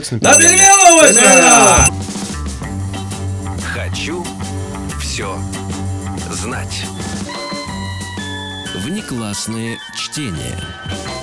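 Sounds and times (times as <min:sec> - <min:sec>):
speech: 0:00.0 - 0:02.6, 0:03.9 - 0:04.3, 0:05.2 - 0:07.6, 0:08.8 - 0:11.2
small hand bell ringing: 0:00.2 - 0:01.9.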